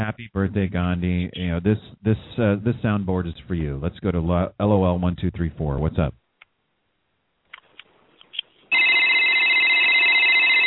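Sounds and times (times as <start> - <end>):
speech: 0.0 - 6.2
telephone ringing with electronic trill: 8.7 - 10.6.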